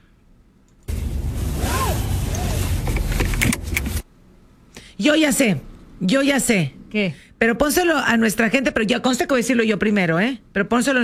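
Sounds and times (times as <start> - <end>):
car seat belt pulled out and retracted: 0.8 - 4.1
car seat belt click: 2.9 - 4.0
speech: 5.0 - 11.0.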